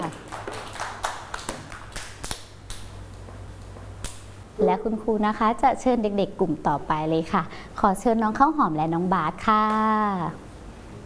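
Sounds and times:
children clapping: 0.0 - 2.9
speech: 4.6 - 10.4.

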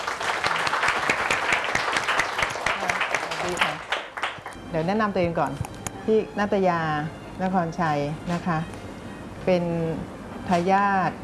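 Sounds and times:
welcoming group applause: 0.0 - 4.6
speech: 4.7 - 8.8, 9.5 - 11.2.

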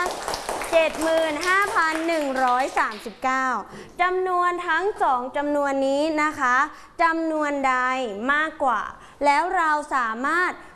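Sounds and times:
class of students clapping: 0.0 - 3.1
speech: 0.7 - 10.7.

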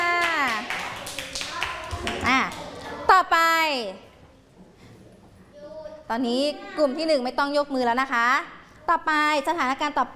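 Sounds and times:
children clapping hands: 0.0 - 2.8
speech: 3.3 - 4.1, 6.1 - 10.1.

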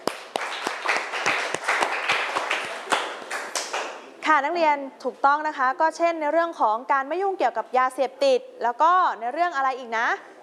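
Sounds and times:
students clapping: 0.0 - 4.0
speech: 4.3 - 10.3.

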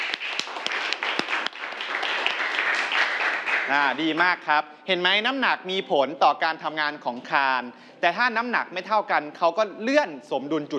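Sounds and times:
students applauding: 0.0 - 4.2
speech: 3.7 - 10.7.

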